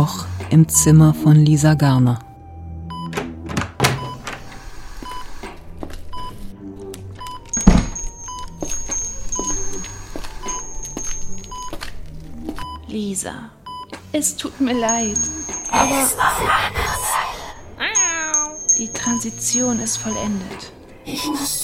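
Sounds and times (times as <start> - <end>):
speech: 0.0 - 2.3, 14.2 - 17.0, 18.8 - 21.6
ventilators beeping at night on a neurology ward in a Hamburg hospital: 3.8 - 6.5, 7.2 - 11.8, 14.6 - 16.3, 17.8 - 21.3.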